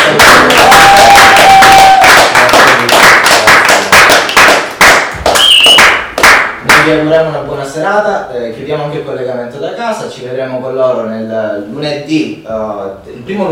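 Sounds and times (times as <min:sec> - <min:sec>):
applause: 0:00.0 - 0:07.0
speech: 0:06.9 - 0:13.5.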